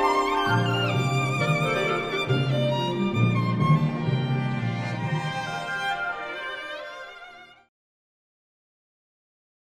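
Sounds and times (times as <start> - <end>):
violin concerto: 0.0 - 7.7.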